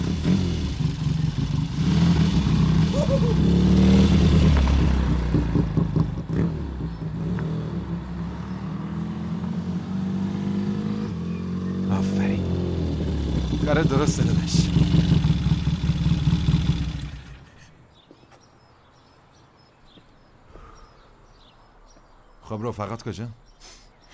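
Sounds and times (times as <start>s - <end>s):
car engine pulling away as clutch is released and throttle applied: 0.0s - 17.7s
speech: 14.0s - 14.6s, 22.6s - 23.8s.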